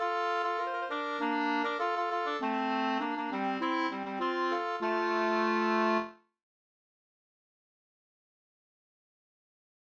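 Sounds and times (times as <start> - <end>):
polka: 0.0 - 6.2.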